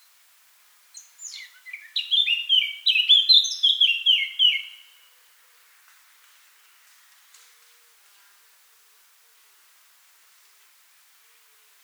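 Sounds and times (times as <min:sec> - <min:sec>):
Eurasian blackcap song: 0:01.0 - 0:05.0.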